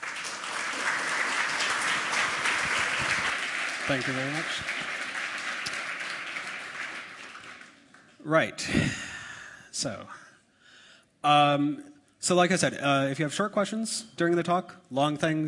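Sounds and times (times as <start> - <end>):
round of applause: 0.0 - 8.8
speech: 3.9 - 4.8, 8.2 - 9.1, 9.8 - 10.2, 11.2 - 15.4.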